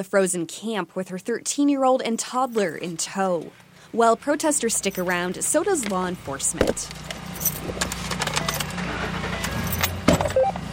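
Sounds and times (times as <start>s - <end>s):
speech: 0.0s - 8.0s
truck low engine rumble: 2.5s - 10.7s
keys jingling and rattling: 4.7s - 6.0s, 6.7s - 8.8s, 9.5s - 10.0s.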